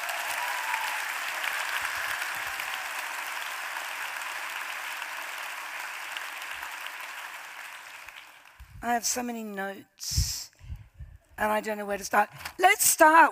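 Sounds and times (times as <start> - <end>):
audience applause: 0.0 - 8.7
speech: 8.8 - 10.5, 11.4 - 13.3.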